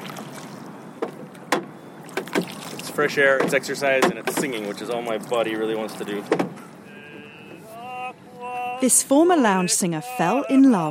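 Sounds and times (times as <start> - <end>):
faint steady wash of water: 0.0 - 1.2, 2.0 - 6.4
rowing boat oar strokes splashing in glassy calm water: 0.0 - 1.2, 1.9 - 7.7
speech: 3.0 - 6.6, 8.8 - 10.8.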